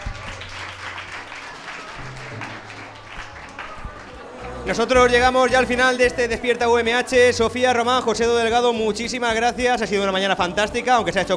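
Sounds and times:
audience applause: 0.0 - 6.0
speech: 4.7 - 11.3.

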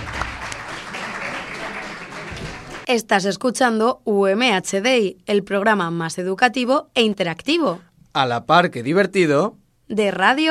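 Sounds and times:
crowd clapping: 0.0 - 2.9
speech: 2.9 - 10.4.

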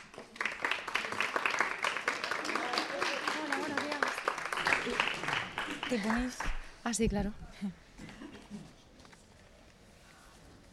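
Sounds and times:
audience applause: 0.0 - 6.6
speech: 5.9 - 7.8.

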